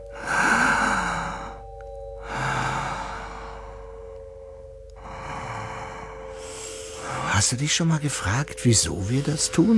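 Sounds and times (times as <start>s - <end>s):
slow deliberate breathing in and out: 0.0s - 7.4s
faint steady hum: 0.0s - 9.7s
speech: 7.4s - 9.7s.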